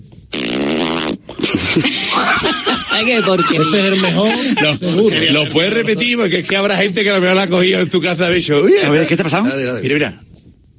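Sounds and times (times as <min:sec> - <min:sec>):
voice imitating a zipper closing: 0:00.3 - 0:01.6
laughter: 0:01.4 - 0:06.4
speech: 0:01.8 - 0:10.3.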